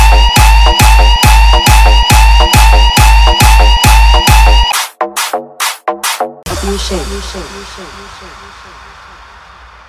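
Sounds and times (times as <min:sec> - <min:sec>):
EDM track with police siren: 0:00.0 - 0:04.8.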